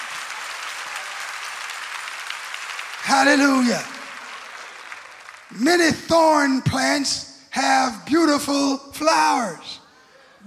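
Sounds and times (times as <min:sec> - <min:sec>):
audience clapping hands: 0:00.0 - 0:06.5
speech: 0:03.1 - 0:03.9, 0:05.6 - 0:09.8.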